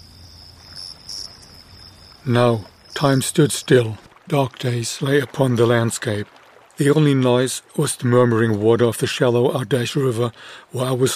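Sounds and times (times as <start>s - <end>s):
loud trill of insects at night: 0.0s - 4.0s
speech: 2.2s - 11.1s.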